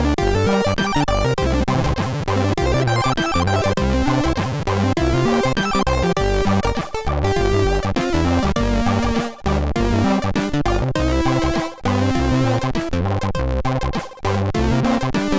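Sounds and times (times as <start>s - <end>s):
MOS6581R3 SID sound chip music: 0.0s - 15.3s.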